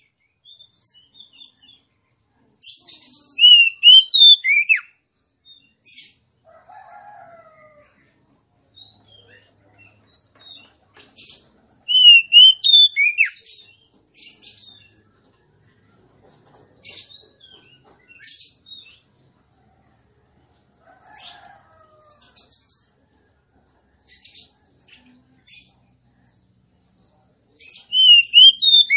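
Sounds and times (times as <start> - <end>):
female Oriental magpie-robin singing rich whistled notes: 3.4 - 4.9, 11.9 - 13.4, 27.9 - 28.9.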